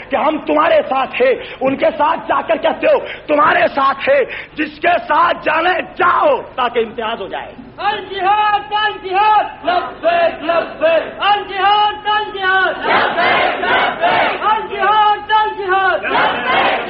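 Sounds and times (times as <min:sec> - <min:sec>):
speech: 0:00.1 - 0:16.8
crowd chanting a slogan in unison at a rally: 0:12.7 - 0:14.5, 0:16.0 - 0:16.8.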